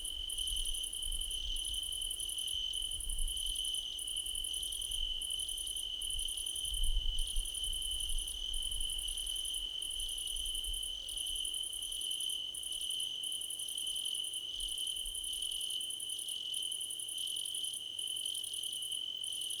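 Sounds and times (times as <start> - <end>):
cricket chorus: 0.0 - 19.5.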